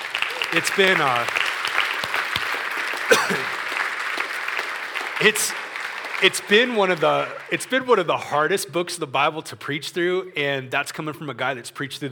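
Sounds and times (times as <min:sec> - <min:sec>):
church congregation applauding after a sermon: 0:00.0 - 0:08.1
speech: 0:00.5 - 0:01.4, 0:03.1 - 0:03.6, 0:05.2 - 0:05.6, 0:06.2 - 0:12.1.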